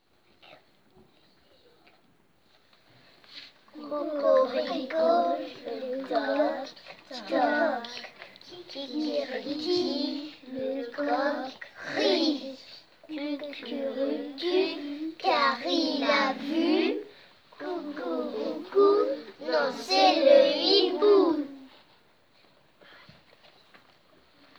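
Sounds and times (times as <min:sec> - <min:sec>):
vocals: 0:03.7 - 0:21.7.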